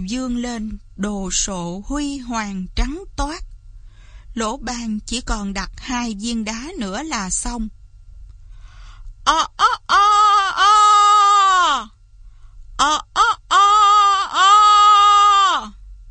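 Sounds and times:
speech: 0.0s - 3.5s, 4.4s - 7.8s, 9.3s - 10.2s, 12.8s - 13.1s
person imitating rooster crow: 9.3s - 11.9s, 12.8s - 15.8s.

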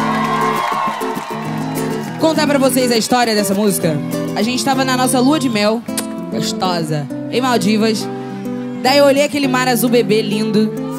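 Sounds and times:
audience applause and cheering: 0.0s - 4.6s
speech: 2.2s - 8.2s, 8.8s - 10.8s.

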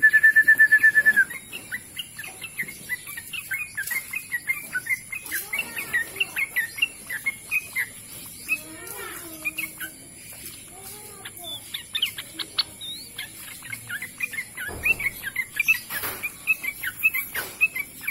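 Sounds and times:
bird trilling and twittering: 0.0s - 18.1s.

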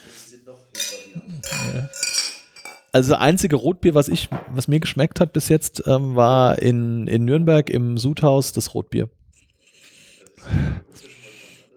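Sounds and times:
speech: 0.5s - 2.0s, 2.9s - 9.2s
glasses of Rotbier red lager clinking in a toast: 0.8s - 3.1s.

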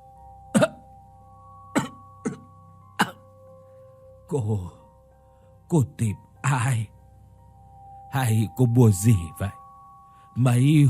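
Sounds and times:
elderly woman coughing harshly: 0.5s - 0.9s, 1.7s - 3.2s
speech: 4.3s - 4.8s, 5.7s - 7.0s, 8.1s - 9.6s, 10.4s - 10.8s.

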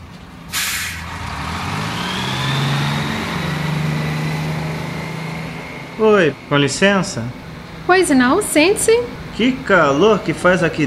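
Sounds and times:
city bus engine drone, interior, accelerating: 0.0s - 10.8s
city bus air-brake hiss: 0.5s - 1.1s
speech: 6.0s - 10.8s.

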